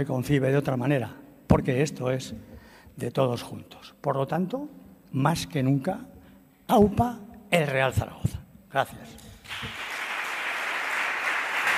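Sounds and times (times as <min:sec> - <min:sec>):
speech: 0:00.0 - 0:06.1, 0:06.7 - 0:09.9
applause for Zaragoza's city sports councillor at a gathering about Real Zaragoza: 0:09.4 - 0:11.7.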